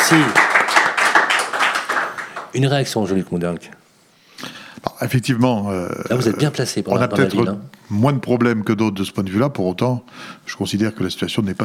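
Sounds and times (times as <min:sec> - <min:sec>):
audience applause: 0:00.0 - 0:02.6
speech: 0:00.1 - 0:00.4, 0:02.5 - 0:03.8, 0:05.0 - 0:11.6.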